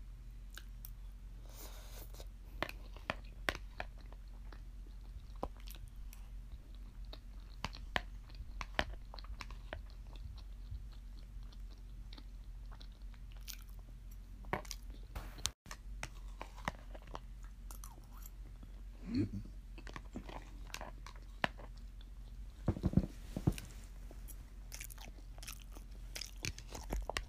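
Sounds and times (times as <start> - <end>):
steady low hum: 0.0 - 27.2
person chewing rice and meat with potatoes: 0.5 - 27.2.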